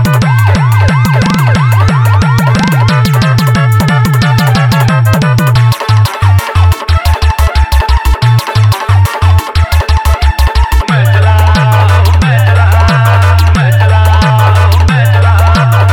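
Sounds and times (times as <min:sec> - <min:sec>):
humming bass: 0:00.0 - 0:15.9
ambulance horn: 0:00.2 - 0:05.2.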